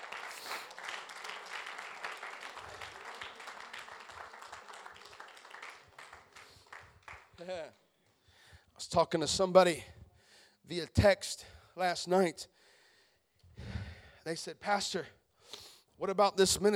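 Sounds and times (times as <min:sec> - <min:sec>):
audience clapping hands: 0:00.0 - 0:07.9
speech: 0:07.4 - 0:07.8, 0:08.8 - 0:10.0, 0:10.7 - 0:12.5, 0:14.3 - 0:15.2, 0:16.0 - 0:16.7.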